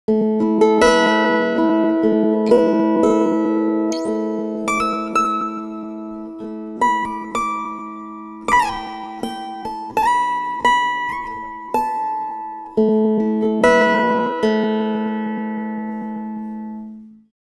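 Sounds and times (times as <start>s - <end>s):
pitch-shifted guitar: 0.1s - 17.1s.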